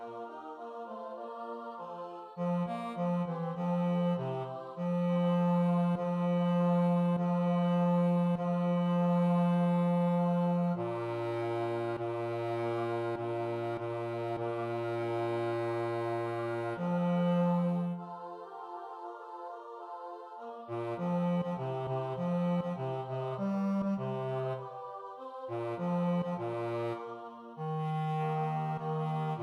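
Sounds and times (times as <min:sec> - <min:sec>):
bass: 0:02.4 - 0:18.0, 0:20.7 - 0:24.6, 0:25.5 - 0:27.0, 0:27.6 - 0:29.4.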